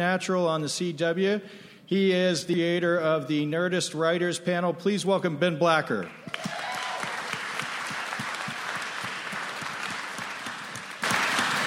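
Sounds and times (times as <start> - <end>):
speech: 0.0 - 6.6
audience clapping: 6.0 - 11.6.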